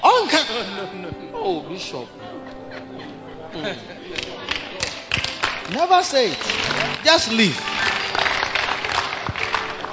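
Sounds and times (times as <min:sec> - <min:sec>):
speech: 0:00.6 - 0:04.3, 0:05.7 - 0:08.0
laughter: 0:01.8 - 0:05.1
audience clapping: 0:04.1 - 0:09.9.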